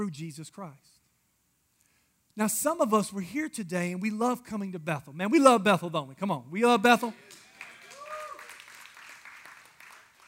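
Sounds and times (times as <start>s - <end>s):
speech: 0.0s - 1.0s, 2.4s - 7.4s
church audience clapping: 7.1s - 10.2s
person whooping or cheering: 7.6s - 8.7s.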